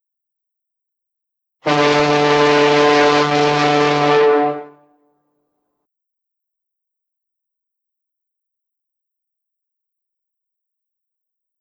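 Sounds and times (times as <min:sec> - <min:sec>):
ship horn at the Golden Gate Bridge: 0:01.6 - 0:05.0.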